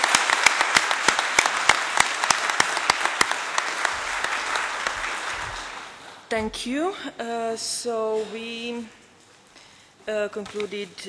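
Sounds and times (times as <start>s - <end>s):
meeting audience applause: 0.0s - 6.2s
speech: 6.3s - 9.0s, 10.1s - 11.0s.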